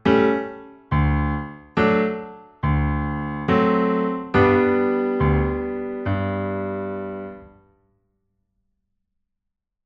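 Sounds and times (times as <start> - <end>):
piano practice playback: 0.0 - 7.8.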